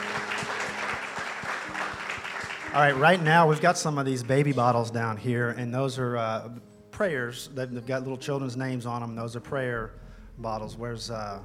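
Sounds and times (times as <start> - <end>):
church congregation clapping after a prayer: 0.0 - 4.6
speech: 2.8 - 11.4.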